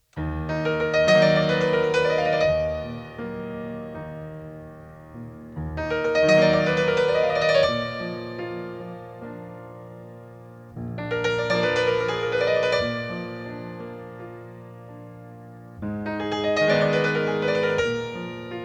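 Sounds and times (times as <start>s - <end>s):
solo piano: 0.0s - 18.6s.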